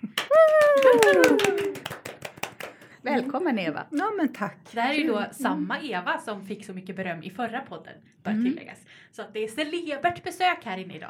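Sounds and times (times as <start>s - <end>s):
small group applause: 0.0s - 3.1s
speech: 3.0s - 11.0s.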